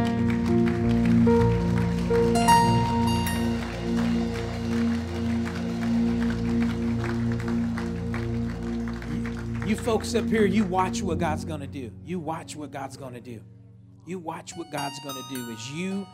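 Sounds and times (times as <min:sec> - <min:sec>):
audience clapping in praise: 0:00.0 - 0:11.0
speech: 0:09.8 - 0:16.1.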